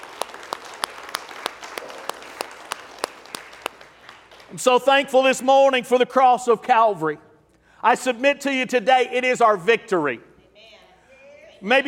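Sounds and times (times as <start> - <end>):
scattered applause: 0.0 - 4.7
sharp rhythmic hand claps: 0.0 - 4.7
speech: 4.5 - 10.3, 11.6 - 11.8.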